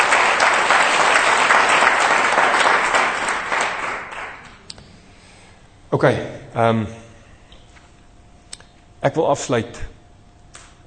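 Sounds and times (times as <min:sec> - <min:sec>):
audience clapping: 0:00.0 - 0:04.6
speech: 0:05.9 - 0:07.0, 0:09.0 - 0:09.9.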